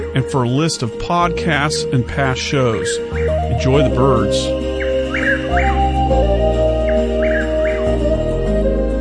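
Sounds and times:
speech: 0:00.1 - 0:04.7
Rio Grande chirping frog calls: 0:02.3 - 0:08.9.

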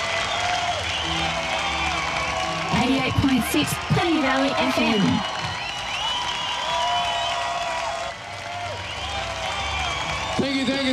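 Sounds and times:
crowd clapping: 0:00.0 - 0:10.9
faint cheering and whistle-like voices: 0:00.0 - 0:10.9
speech: 0:02.9 - 0:05.4, 0:10.4 - 0:10.9.

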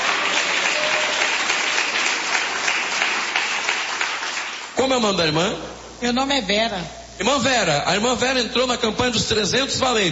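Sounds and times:
crowd clapping hands: 0:00.0 - 0:04.8
speech: 0:04.9 - 0:10.1.

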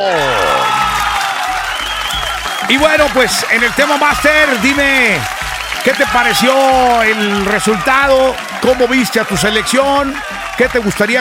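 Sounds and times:
applause on a sports talk show: 0:00.0 - 0:11.2
speech: 0:02.7 - 0:11.2.

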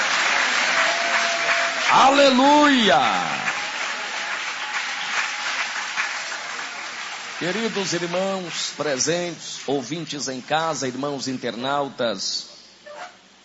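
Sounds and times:
audience applauding: 0:00.0 - 0:09.7
speech: 0:01.9 - 0:03.4, 0:07.4 - 0:12.5.

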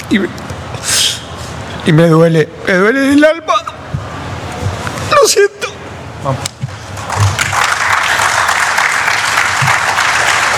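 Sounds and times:
speech: 0:00.1 - 0:01.1, 0:01.8 - 0:03.7, 0:05.2 - 0:05.6, 0:06.2 - 0:06.5
applause: 0:07.0 - 0:10.5.

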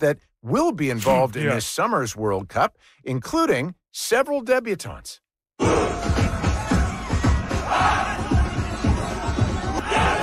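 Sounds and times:
speech: 0:00.0 - 0:06.3
Uzbekistan players and supporters cheering World Cup qualification: 0:05.6 - 0:10.2.

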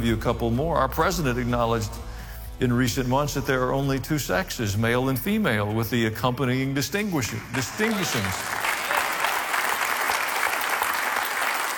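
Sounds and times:
speech: 0:00.0 - 0:08.6
audience applause: 0:07.5 - 0:11.7.

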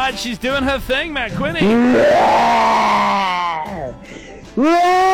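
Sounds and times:
speech: 0:00.2 - 0:04.0, 0:04.6 - 0:05.1
person imitating a roar: 0:01.6 - 0:04.0.

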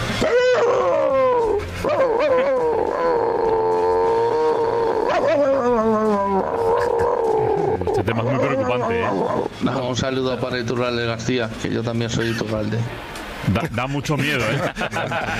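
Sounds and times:
person imitating a chihuahua's bark: 0:00.2 - 0:09.5
laughter: 0:06.5 - 0:07.6, 0:12.0 - 0:12.9, 0:13.5 - 0:15.3
speech: 0:09.6 - 0:15.3.

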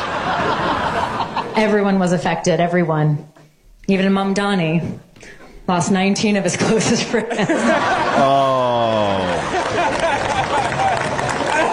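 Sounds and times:
comedy club audience cheering: 0:00.0 - 0:01.6, 0:07.5 - 0:11.7
comedy club audience laughing: 0:00.0 - 0:01.8, 0:06.8 - 0:11.7
speech: 0:01.6 - 0:03.3, 0:03.9 - 0:09.6
comedy club audience clapping: 0:09.0 - 0:11.7.

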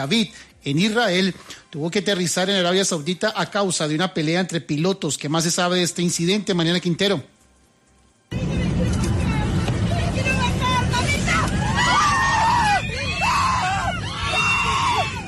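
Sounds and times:
speech: 0:00.0 - 0:07.4
steady low engine drone: 0:08.3 - 0:13.8
passengers screaming in panic aboard airplane: 0:10.0 - 0:15.2.

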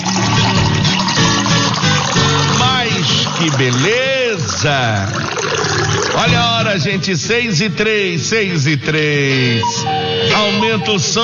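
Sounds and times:
water pouring into a drinking glass: 0:00.0 - 0:06.6
speech: 0:03.5 - 0:11.2.

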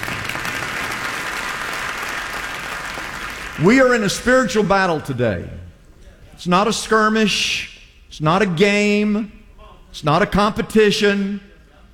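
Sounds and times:
crowd applauding: 0:00.0 - 0:04.0
speech: 0:03.6 - 0:05.6, 0:06.4 - 0:11.5.

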